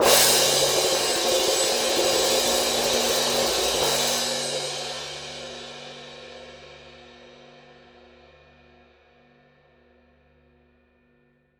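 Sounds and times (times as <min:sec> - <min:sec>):
orchestral cymbal tremolo: 0:00.0 - 0:06.5.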